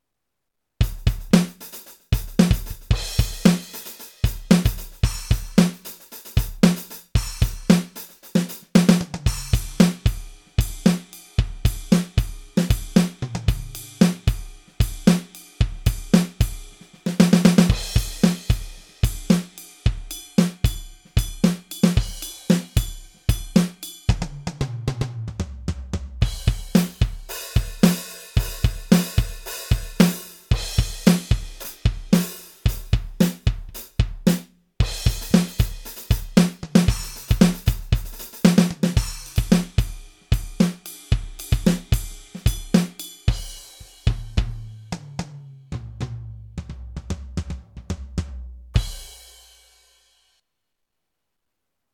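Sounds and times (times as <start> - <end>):
Millenium MPS 1000 studio electronic drum kit: 0.8 - 49.4.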